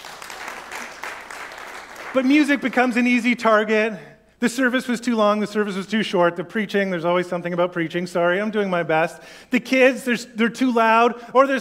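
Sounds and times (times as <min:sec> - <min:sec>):
audience clapping: 0:00.0 - 0:03.2
speech: 0:02.1 - 0:11.5.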